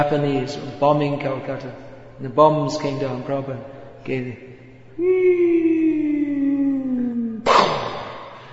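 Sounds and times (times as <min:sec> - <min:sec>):
speech: 0:00.0 - 0:05.7
voice imitating an air raid siren: 0:05.0 - 0:08.0.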